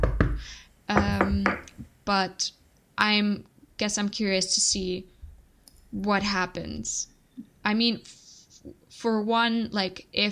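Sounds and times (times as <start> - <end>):
knocking on wood: 0.0 - 0.4, 1.0 - 1.7
speech: 2.1 - 5.1, 5.9 - 10.2.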